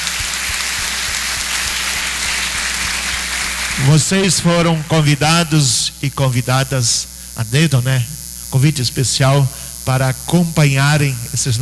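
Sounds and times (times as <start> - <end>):
crowd applauding: 0.0 - 5.3
speech: 3.8 - 11.6.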